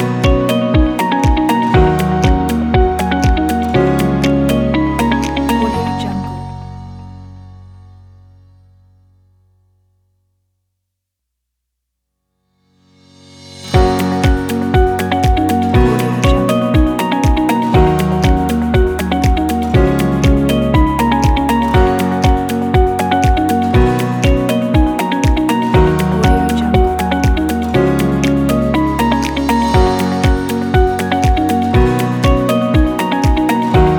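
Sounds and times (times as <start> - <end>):
upbeat corporate motivational inspiring music: 0.0 - 6.7, 13.6 - 33.9.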